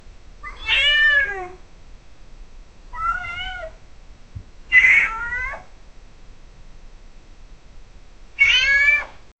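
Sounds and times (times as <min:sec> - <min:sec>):
cat sound in a bathroom: 0:00.4 - 0:01.6, 0:02.9 - 0:03.8, 0:04.7 - 0:05.7, 0:08.4 - 0:09.2.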